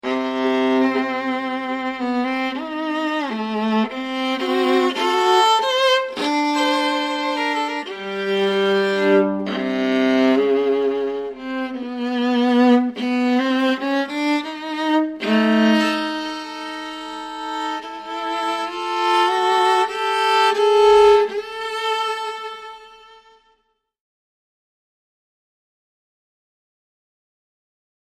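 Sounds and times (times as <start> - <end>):
viola: 0.0 - 23.7.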